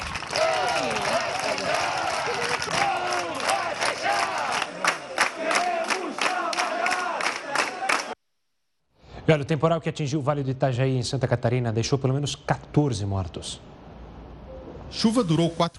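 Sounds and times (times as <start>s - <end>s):
scattered claps and cheers: 0.0s - 8.2s
protesting crowd shouting and chanting outside courthouse: 0.3s - 8.2s
speech: 9.3s - 13.7s, 14.9s - 15.7s.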